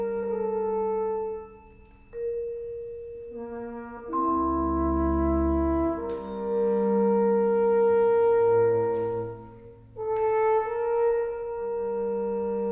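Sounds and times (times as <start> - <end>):
horn: 0.0 - 2.2, 3.3 - 12.7
bass: 0.0 - 12.7.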